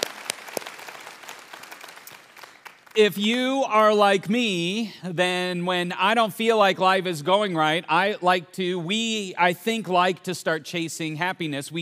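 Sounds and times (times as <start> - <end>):
audience applause: 0.0 - 3.0
speech: 2.9 - 11.7.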